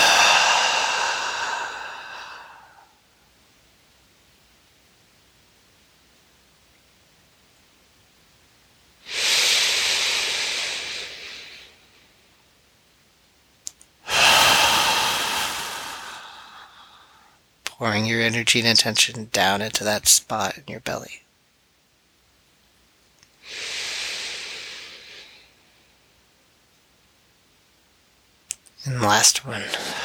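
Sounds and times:
slow deep breathing: 0.0s - 3.2s, 9.1s - 12.0s, 14.0s - 17.4s, 23.4s - 25.7s, 29.4s - 30.0s
speech: 17.8s - 21.2s, 28.8s - 30.0s.

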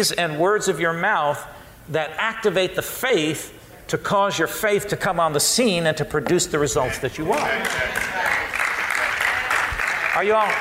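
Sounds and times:
speech: 0.0s - 8.6s, 10.2s - 10.5s
audience clapping: 7.3s - 10.5s.

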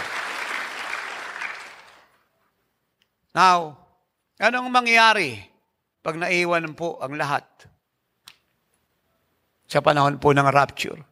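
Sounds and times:
congregation applause at a church service: 0.0s - 2.2s
speech: 3.4s - 3.8s, 4.4s - 7.7s, 9.7s - 11.0s.

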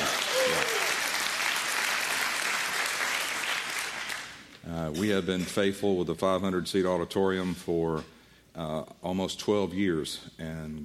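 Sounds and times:
crowd applause: 0.0s - 4.4s
speech: 4.9s - 10.8s.

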